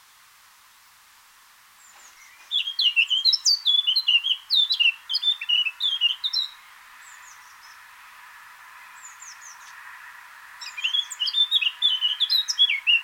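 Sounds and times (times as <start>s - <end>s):
Eurasian blackcap Sylvia atricapilla fluty warbling song: 2.0s - 7.8s, 10.6s - 13.0s.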